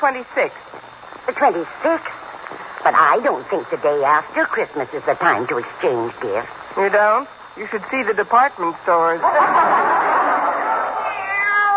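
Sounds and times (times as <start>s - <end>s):
speech: 0.0s - 2.2s, 2.8s - 10.1s
laughter: 9.2s - 11.1s
cat Minerva meowing near a Christmas tree: 11.0s - 11.7s.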